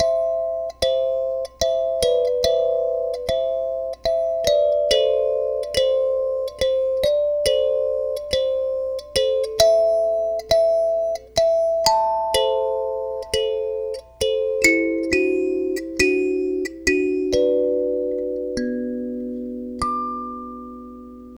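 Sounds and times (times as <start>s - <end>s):
kalimba: 0.0s - 21.3s.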